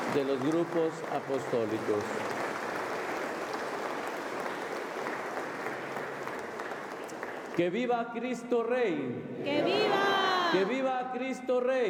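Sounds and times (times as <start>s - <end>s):
audience applause: 0.0s - 7.6s
speech: 0.1s - 2.4s, 7.6s - 11.8s.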